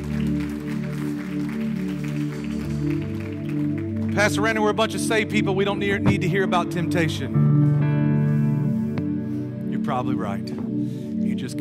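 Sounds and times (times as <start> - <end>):
audience clapping hands: 0.0 - 6.2
sustained musical chords: 3.8 - 11.3
speech: 4.2 - 7.8, 10.0 - 10.6.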